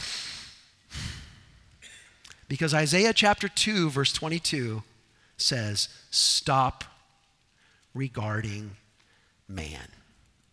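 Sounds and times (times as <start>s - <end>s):
deep breaths in and out through the nose: 0.0s - 1.6s
speech: 2.5s - 6.9s, 7.9s - 8.8s, 9.5s - 10.0s.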